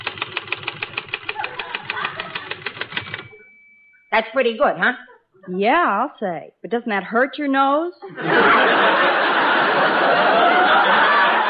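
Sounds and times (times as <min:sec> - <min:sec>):
voice imitating a typewriter typing: 0:00.0 - 0:03.4
laughter: 0:01.3 - 0:02.9, 0:08.0 - 0:11.4
speech: 0:04.2 - 0:10.2.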